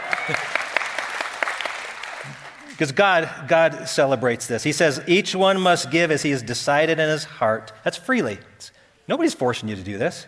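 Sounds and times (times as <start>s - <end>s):
audience applause: 0.0s - 2.8s
speech: 0.3s - 0.6s, 2.3s - 10.2s.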